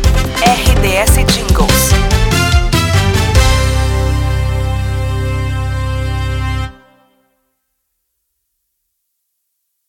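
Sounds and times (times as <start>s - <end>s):
promo soundtrack music: 0.0s - 7.3s.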